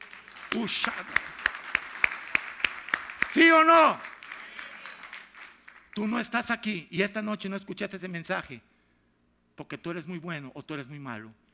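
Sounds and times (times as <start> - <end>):
audience applauding: 0.0 - 6.3
speech: 0.6 - 1.4, 3.3 - 4.1, 6.0 - 8.7, 9.6 - 11.4.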